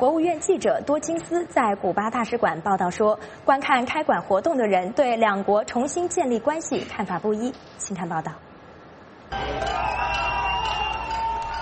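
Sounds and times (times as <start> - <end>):
speech: 0.0 - 8.5
crowd cheering and shouting: 9.3 - 11.6.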